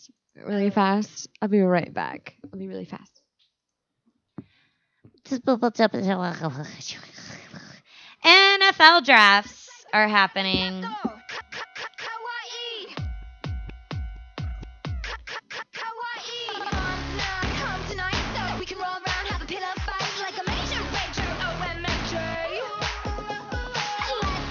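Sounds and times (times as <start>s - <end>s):
speech: 0.4s - 3.2s, 5.3s - 7.4s, 8.2s - 11.1s
low-fidelity pop song playing from a video: 8.2s - 24.4s.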